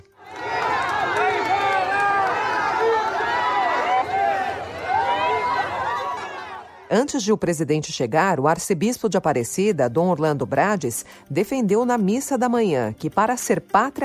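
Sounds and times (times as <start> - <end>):
applause: 0.0 - 6.6
large crowd shouting and jeering: 0.1 - 6.9
speech: 6.9 - 14.0.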